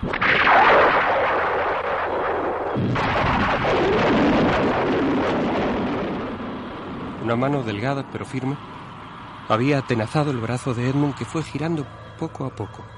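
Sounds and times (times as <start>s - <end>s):
loud continuous rolling thunder: 0.0s - 9.0s
wind-like noise: 0.0s - 12.9s
speech: 7.3s - 8.8s, 9.5s - 12.9s.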